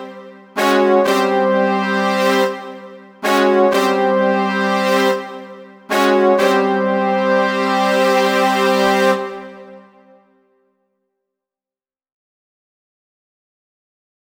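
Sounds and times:
brass instruments: 0:00.0 - 0:10.6.

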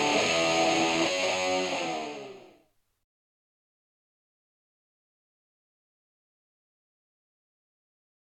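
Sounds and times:
guitar: 0:00.0 - 0:02.7.

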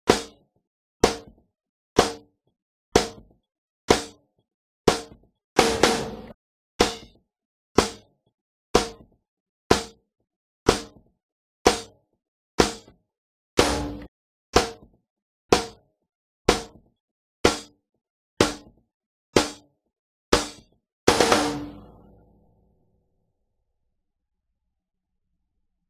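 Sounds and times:
snare drum: 0:01.0 - 0:01.3, 0:03.0 - 0:03.2, 0:04.9 - 0:07.1, 0:07.8 - 0:08.0, 0:08.8 - 0:09.0, 0:09.7 - 0:09.9, 0:10.7 - 0:10.9, 0:12.6 - 0:12.8, 0:13.6 - 0:14.7, 0:16.5 - 0:16.7, 0:17.5 - 0:17.7, 0:18.4 - 0:18.6, 0:19.4 - 0:19.6, 0:20.4 - 0:22.2.

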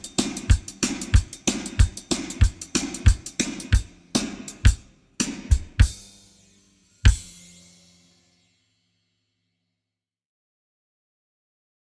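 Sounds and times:
drums: 0:00.0 - 0:08.1.

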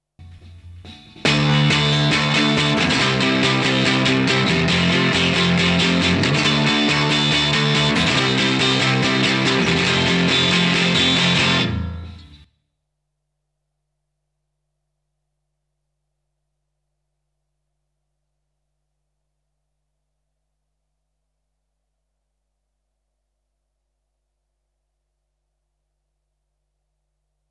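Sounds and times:
guitar: 0:00.2 - 0:12.5.

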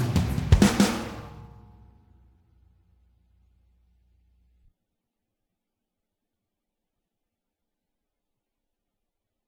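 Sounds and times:
drums: 0:00.0 - 0:02.2.

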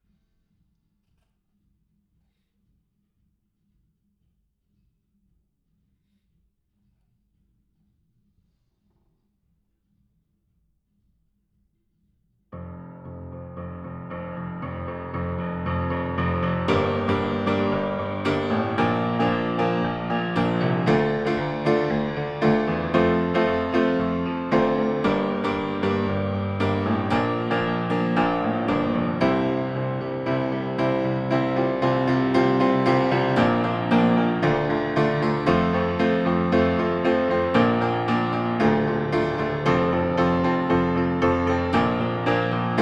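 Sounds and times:
piano: 0:12.6 - 0:42.8.

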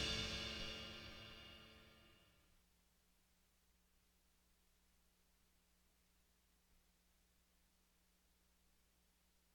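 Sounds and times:
drums: 0:00.0 - 0:02.2.

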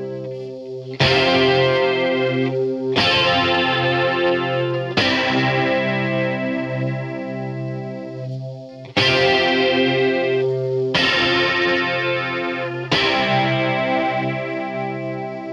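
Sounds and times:
guitar playing: 0:00.0 - 0:15.5.

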